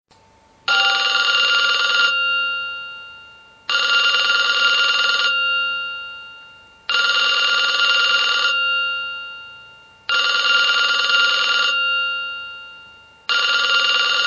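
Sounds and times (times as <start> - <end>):
old telephone: 0.7 - 2.2, 3.7 - 5.4, 6.9 - 8.6, 10.1 - 12.1, 13.3 - 14.2.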